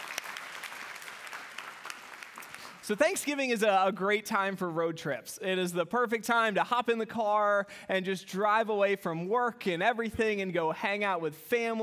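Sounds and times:
audience applause: 0:00.0 - 0:02.9
speech: 0:02.9 - 0:11.8.

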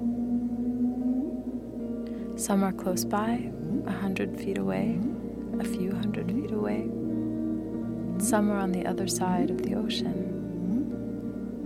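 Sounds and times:
humpback whales singing: 0:00.0 - 0:11.6
speech: 0:02.4 - 0:07.0, 0:08.2 - 0:10.4.

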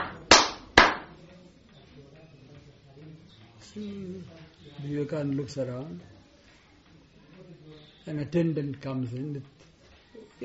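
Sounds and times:
hand clap: 0:00.0 - 0:01.2
speech: 0:03.6 - 0:06.1, 0:08.1 - 0:09.6.

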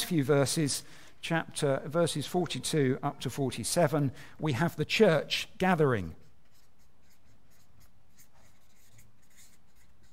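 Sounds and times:
speech: 0:00.1 - 0:06.2
pen strokes on paper during a church talk: 0:06.4 - 0:10.1.

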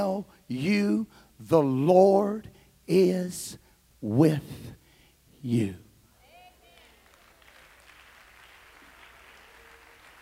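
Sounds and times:
speech: 0:00.0 - 0:04.8, 0:05.4 - 0:05.8
faint audience clapping: 0:06.6 - 0:10.2.

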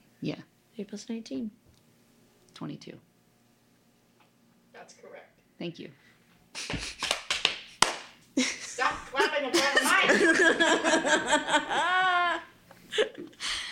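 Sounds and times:
speech: 0:00.2 - 0:01.6, 0:02.6 - 0:03.1, 0:04.8 - 0:07.0, 0:08.4 - 0:12.4, 0:13.0 - 0:13.5
hands clapping close to the microphone: 0:06.6 - 0:08.2
people laughing: 0:08.4 - 0:13.4.

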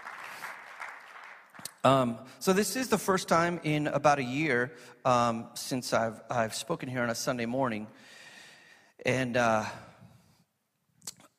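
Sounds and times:
audience clapping: 0:00.0 - 0:01.8
speech: 0:01.8 - 0:08.2, 0:09.0 - 0:09.9.

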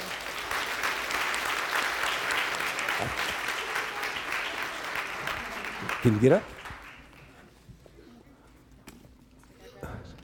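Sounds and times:
audience clapping: 0:00.0 - 0:07.6
speech: 0:03.0 - 0:03.3, 0:06.0 - 0:06.6.

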